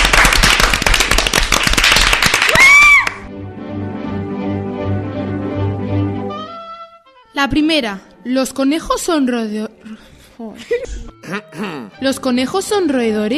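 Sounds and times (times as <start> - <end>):
applause: 0.0 - 3.3
steady musical tune: 3.3 - 7.5
speech: 7.4 - 13.3.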